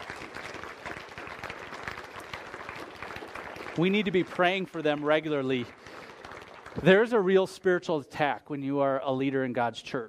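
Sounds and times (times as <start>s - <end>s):
audience applause: 0.0s - 7.3s
speech: 3.8s - 5.9s, 6.8s - 10.0s.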